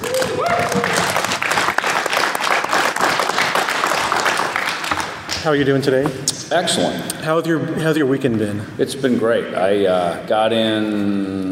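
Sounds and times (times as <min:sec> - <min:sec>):
large audience applause: 0:00.0 - 0:05.4
speech: 0:05.4 - 0:11.5.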